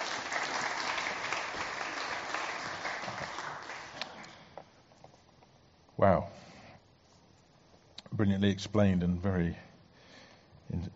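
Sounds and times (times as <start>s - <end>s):
audience round of applause: 0.0s - 4.4s
speech: 6.0s - 6.4s, 8.2s - 9.6s.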